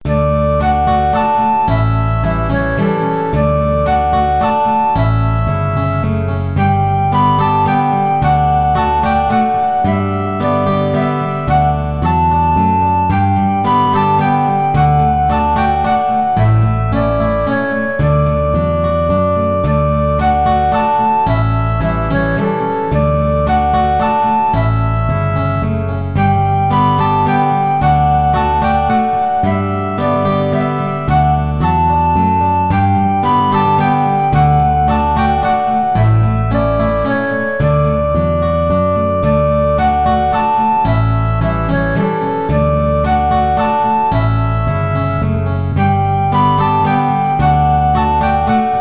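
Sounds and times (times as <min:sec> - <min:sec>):
guitar piece: 0:00.0 - 0:48.7.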